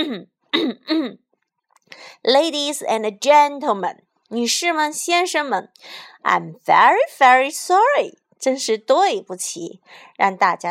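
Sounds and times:
person clearing their throat: 0.0s - 1.2s
speech: 0.0s - 1.2s, 1.9s - 10.7s.

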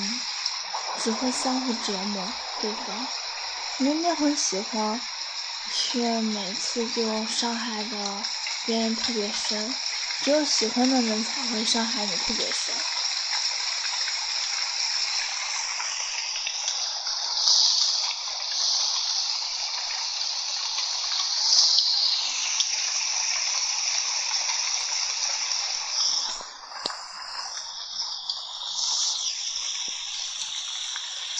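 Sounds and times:
rain falling: 0.0s - 31.3s
speech: 1.0s - 5.1s, 5.7s - 12.9s.

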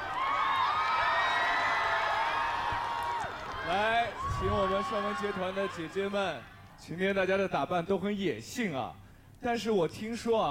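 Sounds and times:
high-pitched screams and whoops from the audience: 0.0s - 6.1s
audience cheering and applause greeting six women of a performing group: 0.0s - 6.4s
speech: 4.4s - 10.4s.

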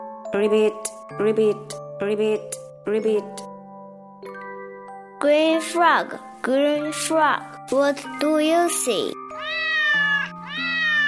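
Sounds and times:
speech: 0.3s - 3.5s, 5.2s - 10.0s
cat meowing: 9.3s - 11.0s.

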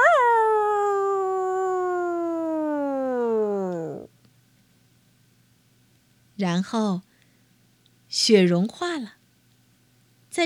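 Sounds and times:
hungry wolf howling: 0.0s - 4.1s
speech: 6.4s - 7.1s, 8.1s - 9.2s.

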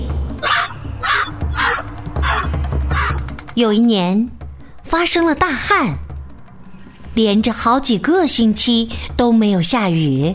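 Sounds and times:
crow cawing: 0.4s - 3.4s
speech: 3.6s - 6.0s, 7.2s - 10.3s.

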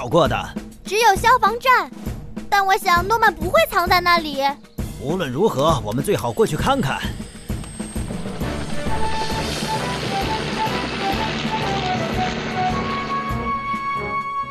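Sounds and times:
speech: 0.0s - 7.2s
helicopter: 6.1s - 14.3s.

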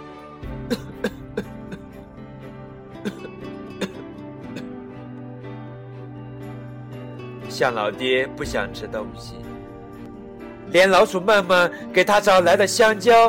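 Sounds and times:
coughing: 0.6s - 2.0s, 3.0s - 4.8s
speech: 0.7s - 1.2s, 7.6s - 9.5s, 10.7s - 13.2s.

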